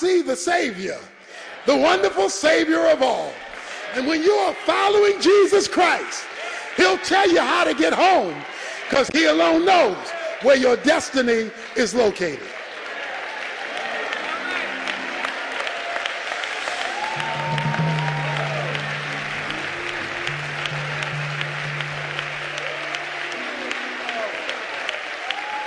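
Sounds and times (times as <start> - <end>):
speech: 0.0 - 12.6
audience clapping: 3.0 - 25.6
low sustained tone: 17.2 - 23.1.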